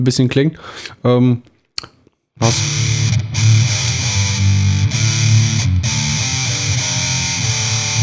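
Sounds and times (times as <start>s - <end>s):
speech: 0.0s - 3.0s
electric guitar through distortion pedal in fat mode: 2.4s - 8.0s.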